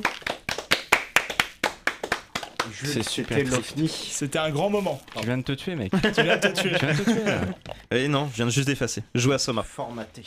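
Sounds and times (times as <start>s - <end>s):
hand clapping: 0.0s - 3.7s
speech: 2.7s - 10.2s
laughter: 5.9s - 7.8s.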